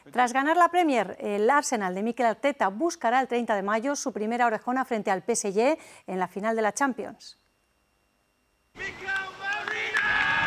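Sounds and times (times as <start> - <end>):
speech: 0.1 - 7.4
hand claps: 8.8 - 10.4
teammates cheering and shouting in an ovation: 8.8 - 10.4.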